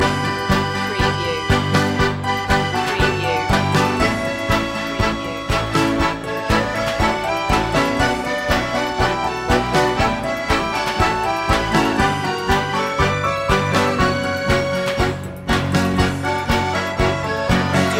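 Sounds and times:
tango loop: 0:00.0 - 0:17.9.

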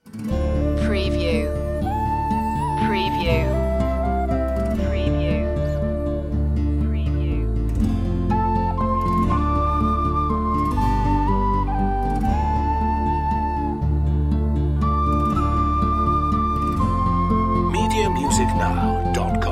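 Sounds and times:
low flute folk melody: 0:00.1 - 0:19.4.

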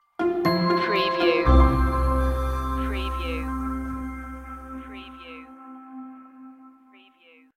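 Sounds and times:
simply joyful music stinger: 0:00.2 - 0:05.4.

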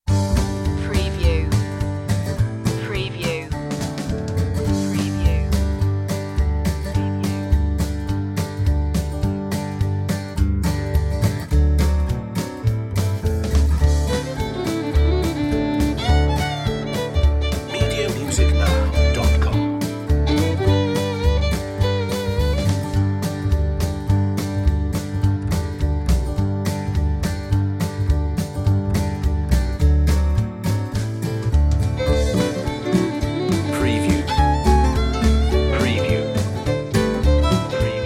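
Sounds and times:
slapped bass: 0:00.0 - 0:38.0
grandma playing the fiddle: 0:00.6 - 0:01.6, 0:04.7 - 0:05.9, 0:13.8 - 0:23.8, 0:31.9 - 0:38.0.

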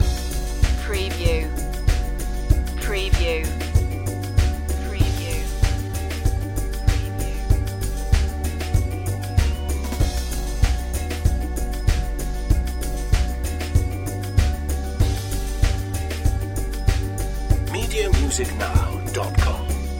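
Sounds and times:
spooky pumpkin head music loop: 0:00.0 - 0:19.9.

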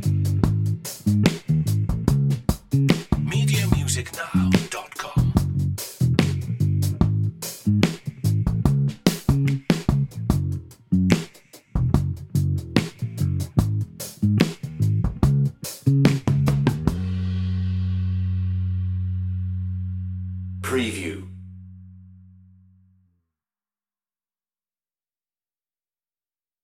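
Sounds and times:
drums: 0:00.0 - 0:21.2
bass: 0:00.0 - 0:23.2.

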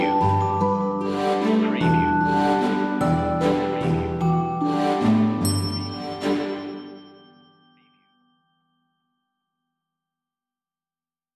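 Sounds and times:
regal waltz music: 0:00.0 - 0:08.0.

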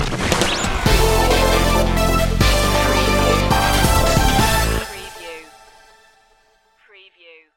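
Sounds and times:
DIY music sting: 0:00.6 - 0:06.0.

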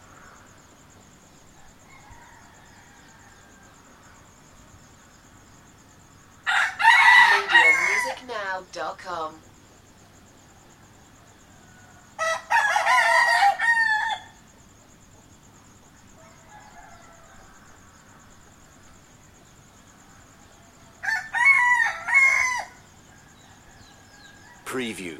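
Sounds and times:
hiss: 0:00.0 - 0:25.1
rooster crowing: 0:01.6 - 0:04.1, 0:06.4 - 0:08.3, 0:11.4 - 0:14.4, 0:16.2 - 0:18.3, 0:20.1 - 0:24.7
speech: 0:08.6 - 0:09.5, 0:24.8 - 0:25.1.

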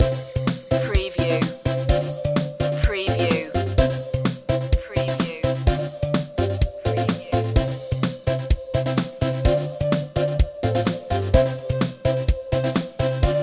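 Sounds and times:
playtime music loop: 0:00.0 - 0:13.4.

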